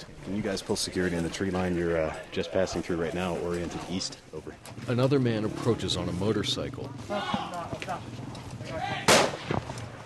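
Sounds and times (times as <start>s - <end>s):
speech: 0.0s - 9.3s
soldier's warning gunshot: 9.1s - 9.8s.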